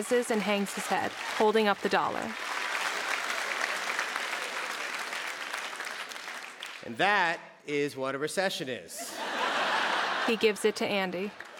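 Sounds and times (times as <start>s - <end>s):
speech: 0.0s - 2.7s, 6.8s - 9.2s, 10.3s - 11.5s
steady dense hand clapping: 2.2s - 6.8s
laughter: 9.0s - 11.3s.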